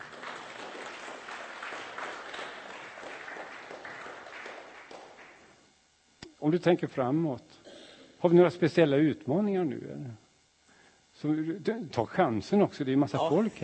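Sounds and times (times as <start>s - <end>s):
audience applause: 0.0s - 5.5s
speech: 6.4s - 7.6s, 8.2s - 10.2s, 11.2s - 13.6s.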